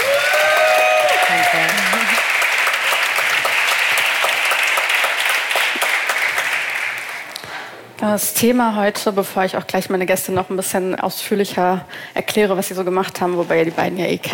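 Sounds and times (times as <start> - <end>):
audience applause: 0.0 - 7.4
speech: 8.0 - 14.3.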